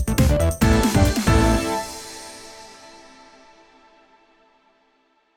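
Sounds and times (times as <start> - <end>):
end stinger: 0.1 - 4.1.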